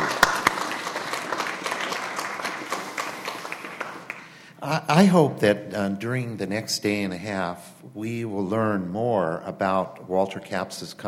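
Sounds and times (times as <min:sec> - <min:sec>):
audience applause: 0:00.0 - 0:04.4
speech: 0:04.7 - 0:11.0.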